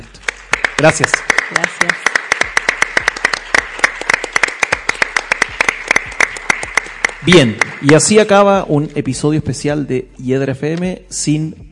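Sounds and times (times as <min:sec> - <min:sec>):
applause: 0:00.0 - 0:08.4
speech: 0:00.8 - 0:02.1, 0:07.2 - 0:11.7.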